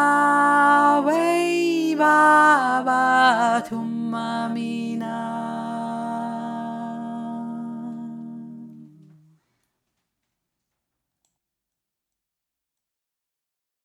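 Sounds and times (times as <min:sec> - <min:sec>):
lead voice part singing: 0:00.0 - 0:09.4.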